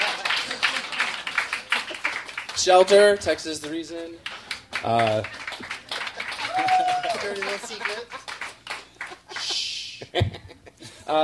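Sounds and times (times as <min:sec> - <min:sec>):
laughter: 0:00.0 - 0:02.3, 0:05.6 - 0:11.2
audience clapping: 0:00.0 - 0:09.9
speech: 0:02.6 - 0:05.4, 0:07.2 - 0:08.3, 0:10.1 - 0:10.5.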